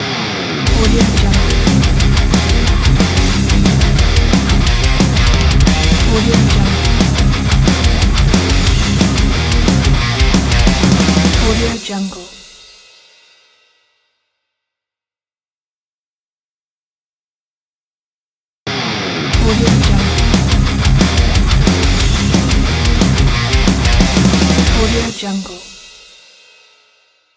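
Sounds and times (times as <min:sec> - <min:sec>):
heavy metal logo music: 0:00.0 - 0:11.9, 0:18.7 - 0:25.3.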